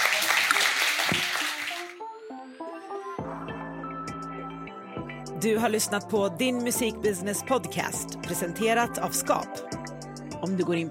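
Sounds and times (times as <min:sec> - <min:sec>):
audience applause: 0:00.0 - 0:02.0
speech: 0:05.4 - 0:09.7, 0:10.4 - 0:10.8.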